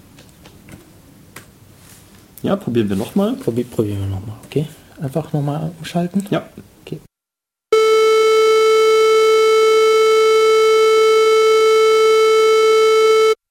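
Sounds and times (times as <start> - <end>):
speech: 2.4 - 7.1
synthesizer sine wave tone: 7.7 - 13.4.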